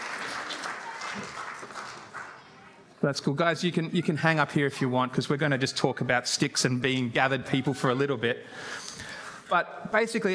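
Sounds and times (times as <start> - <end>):
audience applause: 0.0 - 2.8
speech: 3.0 - 10.3.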